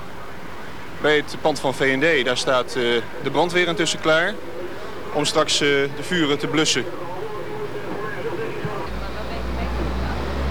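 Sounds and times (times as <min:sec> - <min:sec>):
street rioting noise: 0:00.0 - 0:10.4
speech: 0:01.0 - 0:04.6, 0:05.2 - 0:07.2
armoured riot police vehicle engine rumble: 0:07.4 - 0:10.4.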